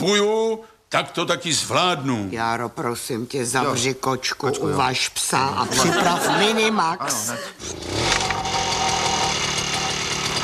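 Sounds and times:
speech: 0.0 - 8.3
laughter: 5.6 - 7.6
lawn mower engine starting and running: 7.6 - 10.4.

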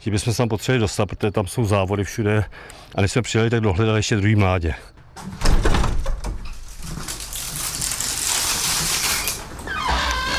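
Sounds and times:
speech: 0.0 - 5.7
aviary door being carefully opened: 5.1 - 7.5, 8.6 - 10.3.

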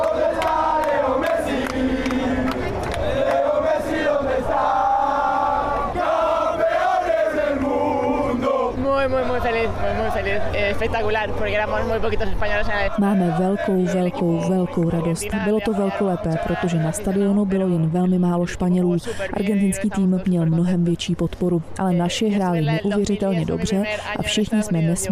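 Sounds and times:
football fans chanting in a stadium: 0.0 - 11.4, 12.6 - 18.1
speech: 9.7 - 25.1.

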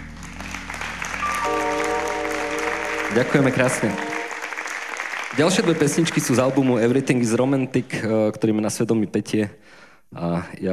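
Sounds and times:
crowd applauding: 0.0 - 7.7
sustained musical tones: 0.1 - 7.2
speech: 3.1 - 4.1, 5.4 - 10.7.

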